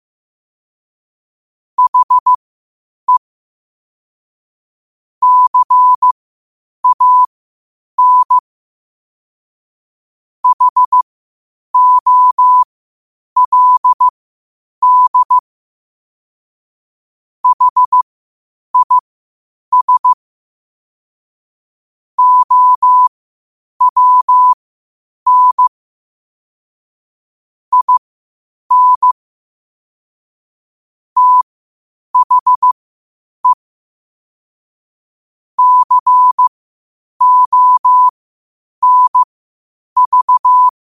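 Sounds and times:
morse code at 5 wpm: 1.8s - 2.4s, 5.2s - 6.2s, 6.8s - 7.3s, 8.0s - 8.4s, 10.4s - 11.0s, 11.8s - 12.7s, 13.4s - 14.1s, 14.8s - 15.4s, 17.4s - 18.0s, 18.8s - 19.0s, 19.7s - 20.2s, 22.2s - 23.1s, 23.8s - 24.6s, 25.3s - 25.7s, 27.7s - 28.0s, 28.7s - 29.2s, 31.2s - 31.5s, 32.2s - 32.8s, 35.6s - 36.5s, 37.2s - 38.1s, 38.8s - 39.3s, 40.0s - 40.8s.

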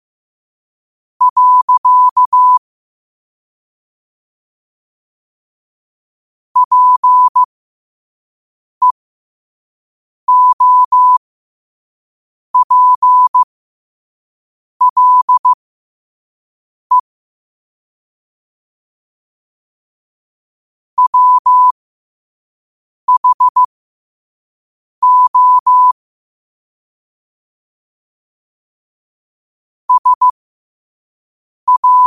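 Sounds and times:
morse code at 5 wpm: 1.2s - 2.6s, 6.6s - 7.5s, 10.3s - 11.2s, 12.6s - 13.5s, 14.8s - 15.6s, 21.0s - 21.8s, 23.1s - 23.7s, 25.0s - 26.0s, 29.9s - 30.4s, 31.7s - 32.0s.

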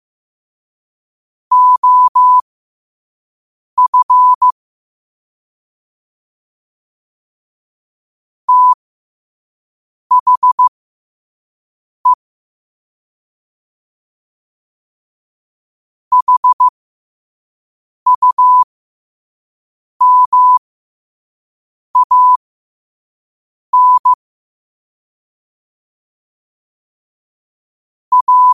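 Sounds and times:
morse code at 5 wpm: 1.5s - 2.4s, 3.8s - 4.6s, 8.5s - 8.8s, 10.1s - 10.7s, 16.1s - 16.7s, 18.1s - 18.7s, 20.0s - 20.6s, 22.0s - 22.4s, 23.8s - 24.2s, 28.1s - 28.5s.

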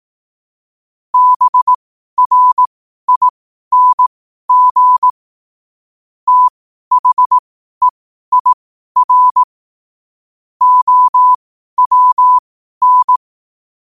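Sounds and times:
morse code at 5 wpm: 1.2s - 5.1s, 6.3s - 9.5s, 10.6s - 13.2s.

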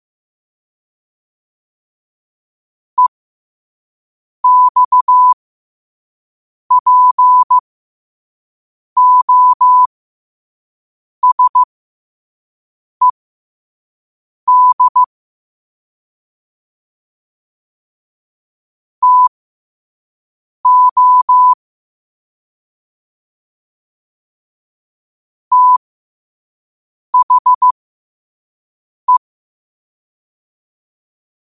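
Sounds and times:
morse code at 5 wpm: 4.4s - 5.4s, 6.7s - 7.6s, 9.0s - 9.9s, 11.2s - 11.7s, 14.5s - 15.1s, 19.0s - 19.3s, 20.7s - 21.6s, 25.5s - 25.8s, 27.2s - 27.7s.

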